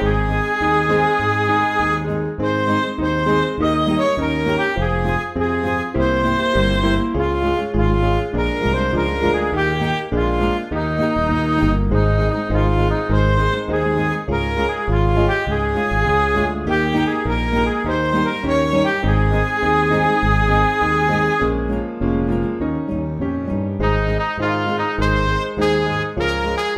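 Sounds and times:
MIDI music: 0.0s - 26.7s.

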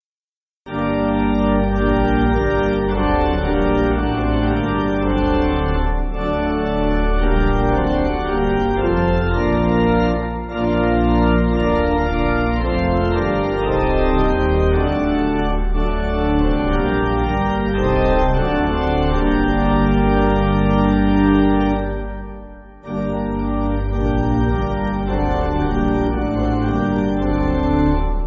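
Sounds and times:
pipe organ music backing: 0.7s - 28.2s.

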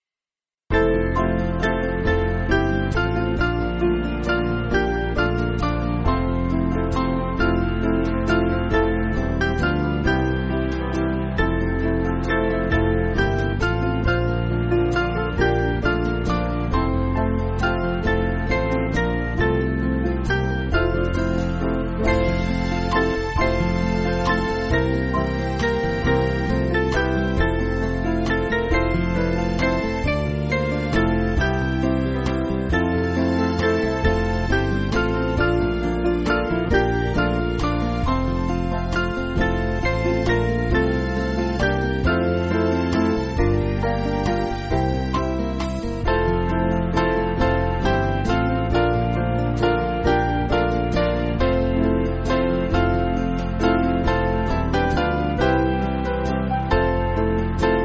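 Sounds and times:
band backing music for churches: 0.7s - 57.8s.

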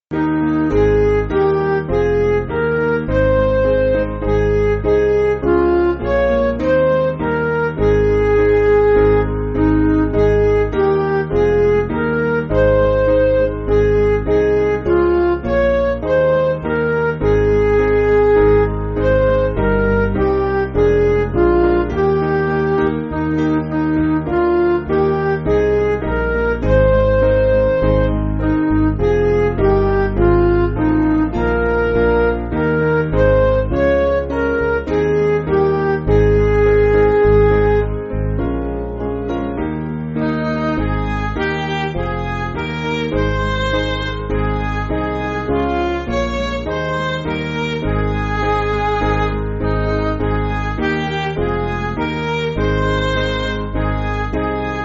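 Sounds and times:
MIDI backing music: 0.1s - 54.8s.

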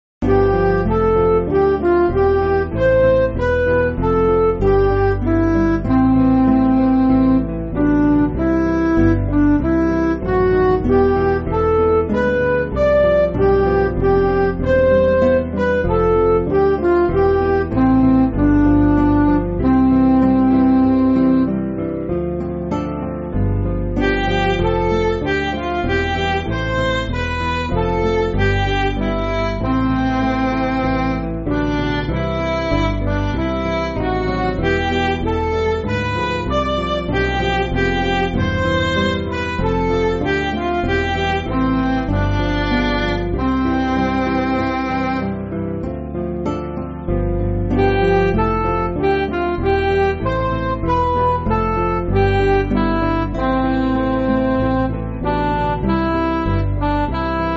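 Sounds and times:
MIDI music: 0.2s - 57.5s.

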